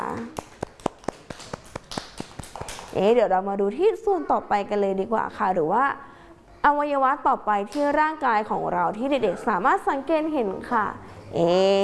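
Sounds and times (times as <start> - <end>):
children clapping hands: 0.0 - 3.0
speech: 3.0 - 11.8.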